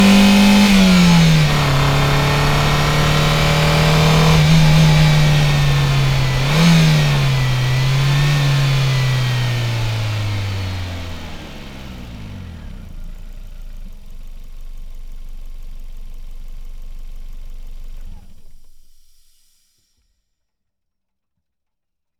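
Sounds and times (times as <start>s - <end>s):
1995 Ford Probe driving fast, recorded onboard: 0.0s - 13.7s
1995 Ford Probe engine starting, recorded onboard: 0.0s - 19.4s.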